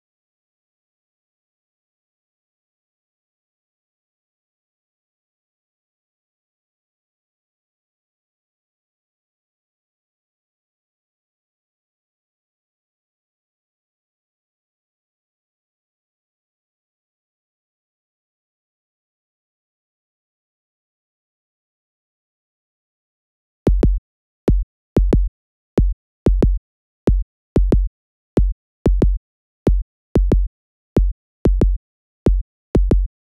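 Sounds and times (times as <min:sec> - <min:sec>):
fruity kick drum: 0:23.7 - 0:33.1.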